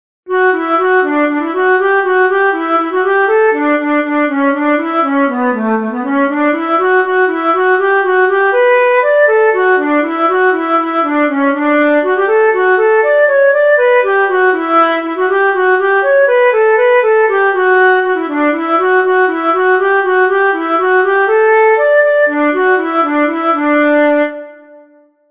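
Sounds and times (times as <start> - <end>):
jig music: 0.3 - 25.0.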